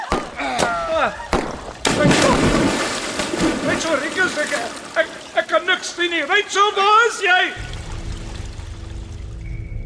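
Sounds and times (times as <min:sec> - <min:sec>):
gunshot: 0:00.0 - 0:02.8
speech: 0:01.0 - 0:01.3, 0:03.8 - 0:07.7.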